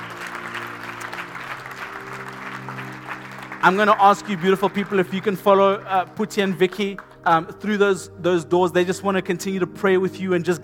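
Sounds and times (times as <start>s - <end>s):
large crowd applause: 0.0s - 7.3s
low sustained organ drone: 0.0s - 8.6s
speech: 3.6s - 10.6s.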